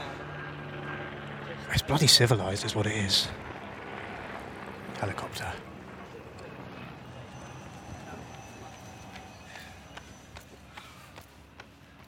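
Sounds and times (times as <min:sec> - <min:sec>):
speech: 0:01.7 - 0:03.5, 0:05.0 - 0:05.7
man running past on London Bridge: 0:07.4 - 0:12.0.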